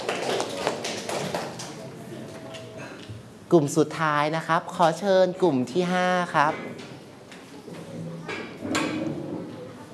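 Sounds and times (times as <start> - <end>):
applause: 0.0 - 1.8
speech: 3.5 - 6.9.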